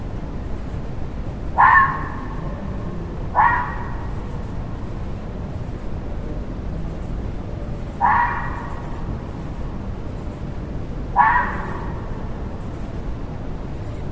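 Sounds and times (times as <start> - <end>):
low background rumble: 0.0 - 14.1
fox barking: 1.5 - 4.9, 7.8 - 9.6, 11.0 - 13.0.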